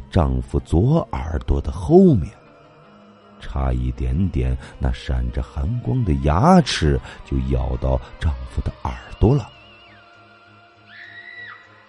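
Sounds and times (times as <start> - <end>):
speech: 0.1 - 2.4, 3.4 - 9.6
woman screaming: 10.9 - 11.7.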